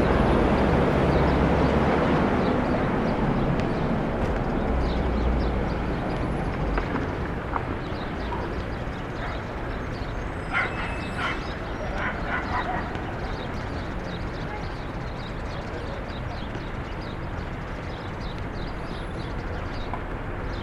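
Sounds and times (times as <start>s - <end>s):
traffic noise from a Brooklyn rooftop at Starr Street: 0.0s - 20.6s
dog bark: 9.2s - 9.5s, 10.5s - 13.0s
faint voices: 10.4s - 17.1s.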